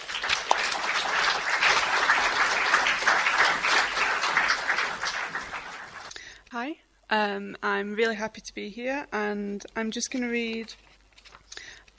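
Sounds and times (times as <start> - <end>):
audience applause welcoming a poet at a writers' event: 0.0 - 6.1
speech: 7.1 - 10.9.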